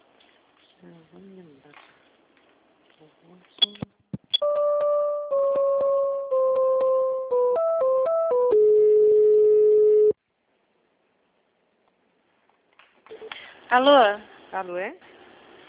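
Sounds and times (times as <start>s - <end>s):
speech: 0.8s - 1.9s, 3.0s - 4.0s, 13.7s - 15.2s
electronic tones of a telephone call being transferred: 4.4s - 10.2s.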